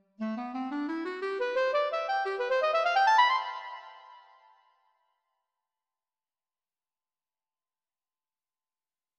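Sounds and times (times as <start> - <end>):
clarinet playing animato: 0.2 - 4.3.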